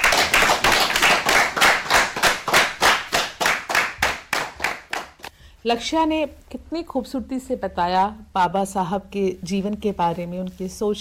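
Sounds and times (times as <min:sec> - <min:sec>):
children clapping: 0:00.0 - 0:05.3
speech: 0:05.6 - 0:11.0.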